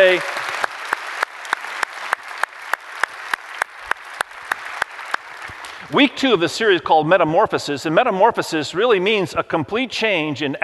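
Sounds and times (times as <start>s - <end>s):
audience applause: 0.0s - 5.9s
speech: 0.1s - 0.4s, 5.9s - 10.6s.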